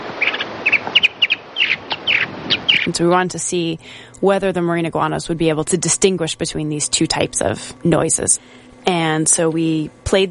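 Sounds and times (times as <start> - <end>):
mockingbird chirps: 0.0 - 3.0
speech: 2.9 - 10.3.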